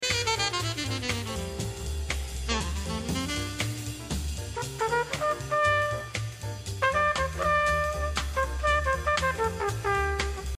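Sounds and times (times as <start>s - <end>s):
shared musical motif: 0.0s - 10.5s.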